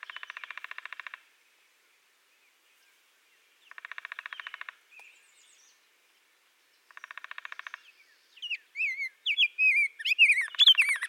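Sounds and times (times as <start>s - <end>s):
Rose-breasted grosbeak Pheucticus ludovicianus song: 0.0s - 11.0s.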